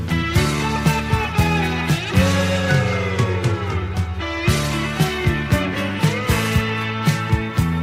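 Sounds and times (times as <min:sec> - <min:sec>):
Chinese ringtone: 0:00.2 - 0:07.7.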